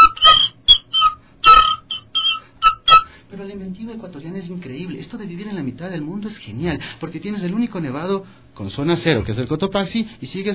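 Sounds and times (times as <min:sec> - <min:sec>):
Ecuadorian whistle blown loudly: 0:00.0 - 0:03.1
speech: 0:03.5 - 0:10.5.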